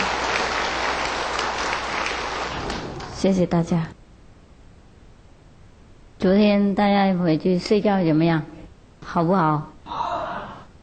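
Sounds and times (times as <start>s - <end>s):
audience applause: 0.0s - 3.2s
speech: 3.2s - 4.0s, 6.2s - 10.0s.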